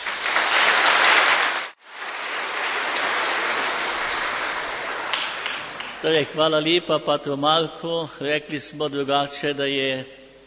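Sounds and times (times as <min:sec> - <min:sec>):
audience applause: 0:00.0 - 0:06.1
speech: 0:06.0 - 0:10.2.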